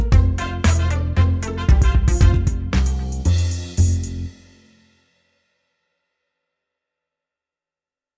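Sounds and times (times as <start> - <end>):
hip hop music: 0.0 - 4.4.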